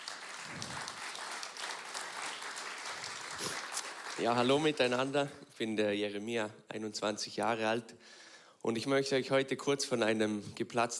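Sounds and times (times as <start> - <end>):
crowd applause: 0.0 - 4.8
speech: 4.2 - 10.9.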